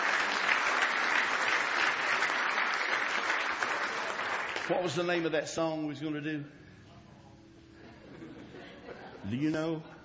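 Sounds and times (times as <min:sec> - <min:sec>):
crowd applause: 0:00.0 - 0:05.2
speech: 0:04.7 - 0:06.6, 0:09.3 - 0:09.9.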